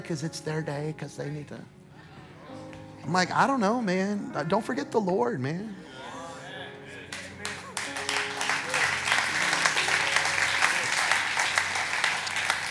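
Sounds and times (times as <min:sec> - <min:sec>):
speech: 0:00.0 - 0:01.8, 0:03.1 - 0:05.9
light polite audience clapping: 0:07.1 - 0:12.7.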